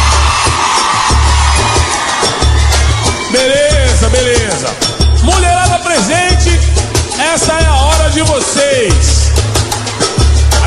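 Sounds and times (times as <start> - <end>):
crowd of women shouting and cheering: 0.0 - 4.9
thumping bass beat: 0.0 - 10.6.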